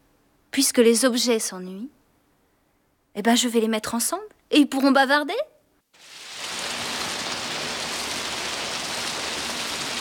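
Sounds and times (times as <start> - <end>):
speech: 0.6 - 2.0, 3.2 - 6.1
rain falling in a garden: 6.0 - 9.9.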